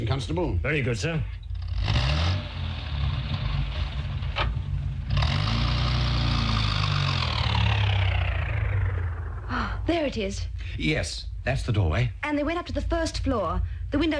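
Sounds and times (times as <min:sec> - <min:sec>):
speech: 0:00.1 - 0:01.4, 0:09.9 - 0:14.1
car engine as car reverses: 0:01.4 - 0:10.0.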